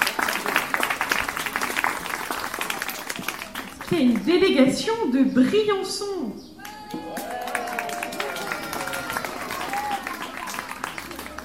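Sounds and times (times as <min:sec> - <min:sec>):
children and audience applauding: 0:00.0 - 0:04.0, 0:06.6 - 0:11.4
speech: 0:03.9 - 0:06.4.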